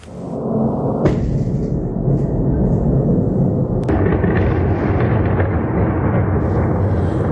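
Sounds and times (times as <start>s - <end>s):
Russian attack drones rumbling over Kyiv: 0.0s - 7.2s
sharp cracking bangs: 1.0s - 2.6s, 3.8s - 7.2s.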